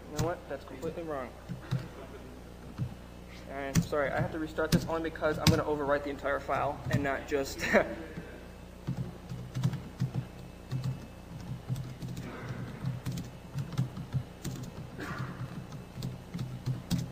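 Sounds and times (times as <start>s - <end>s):
speech: 0.2s - 2.9s, 3.5s - 8.2s
fast typing on a computer keyboard: 8.8s - 17.1s.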